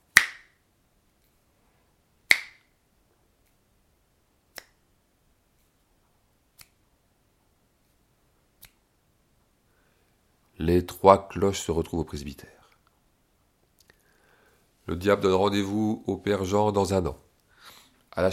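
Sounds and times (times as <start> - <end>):
fingers snapping: 0.1 - 0.6, 2.3 - 2.7, 4.5 - 4.8, 6.6 - 6.8, 8.6 - 8.8
speech: 10.6 - 12.6, 14.9 - 17.2, 18.2 - 18.3.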